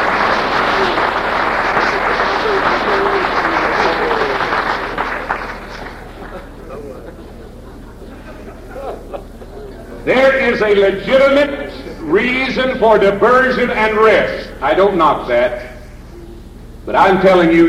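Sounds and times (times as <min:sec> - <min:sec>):
audience hand clapping: 0:00.0 - 0:07.6
laughter: 0:00.0 - 0:10.4
speech: 0:10.5 - 0:15.7, 0:16.8 - 0:17.6.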